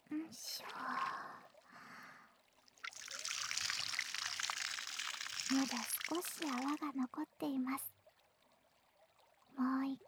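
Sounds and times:
speech: 0:00.3 - 0:01.9, 0:05.5 - 0:08.0, 0:09.6 - 0:10.0
water pouring and splashing, rinsing suds off a body: 0:02.7 - 0:06.9.

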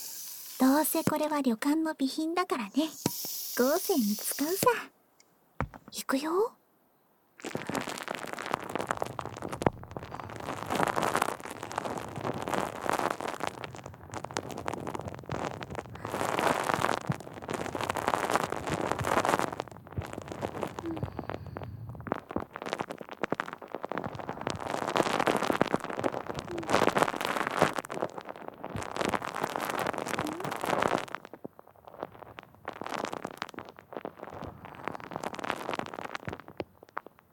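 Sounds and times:
foam fizzing and crackling near the ear: 0:00.0 - 0:04.9, 0:07.4 - 0:37.3
speech: 0:00.7 - 0:05.0, 0:05.9 - 0:06.6.

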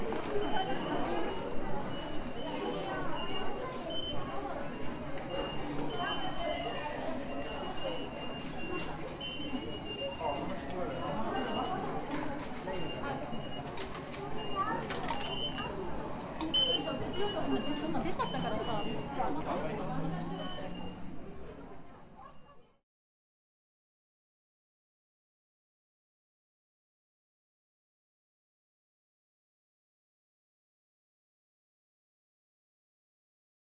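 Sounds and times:
ambience from leaving the train to the ticket gate: 0:00.0 - 0:22.7.

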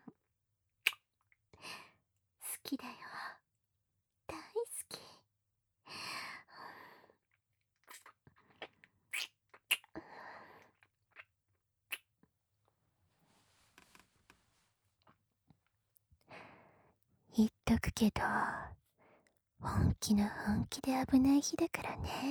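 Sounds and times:
kissing: 0:00.9 - 0:01.1, 0:09.1 - 0:09.9
person talking softly in bed: 0:17.3 - 0:18.7, 0:19.6 - 0:22.3.

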